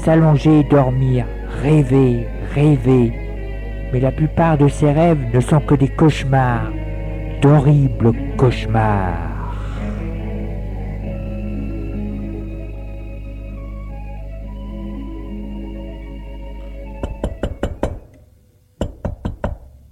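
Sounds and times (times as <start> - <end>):
speech: 0.0 - 3.2, 3.9 - 6.8, 7.4 - 9.3
knocking on a door: 17.0 - 18.1, 18.8 - 19.7.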